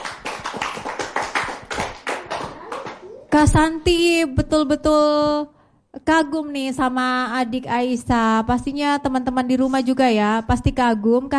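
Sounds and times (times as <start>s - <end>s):
audience clapping: 0.0s - 3.2s
speech: 3.3s - 11.3s.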